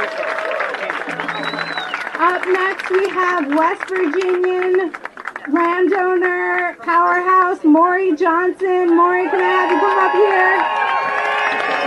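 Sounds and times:
cheering voices: 0.0s - 2.5s, 9.1s - 11.8s
audience applause: 0.0s - 5.5s, 9.3s - 11.8s
whistle: 1.1s - 2.0s
speech: 2.4s - 10.7s.

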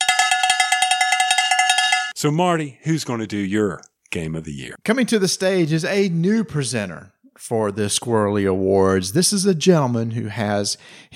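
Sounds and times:
cowbell clanking: 0.0s - 2.2s
speech: 2.2s - 11.1s.

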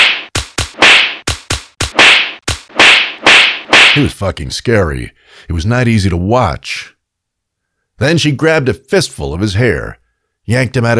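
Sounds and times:
open-handed slaps to the face: 0.0s - 4.1s
speech: 4.0s - 7.0s, 8.0s - 10.9s.

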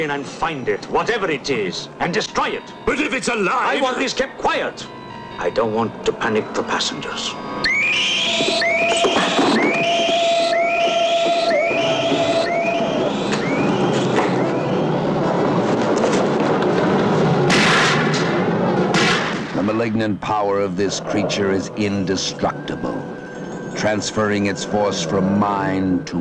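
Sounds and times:
speech: 0.0s - 9.1s, 19.7s - 23.0s, 23.8s - 26.1s
sweeping whistle-like tones: 2.5s - 15.8s, 21.6s - 26.1s
heavy noisy blasts: 8.8s - 20.0s
gunshots: 17.4s - 19.6s.

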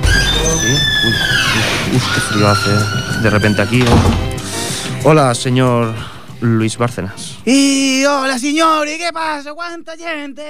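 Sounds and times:
door creaking open: 0.0s - 5.0s
speech: 2.0s - 4.3s, 5.0s - 10.4s.

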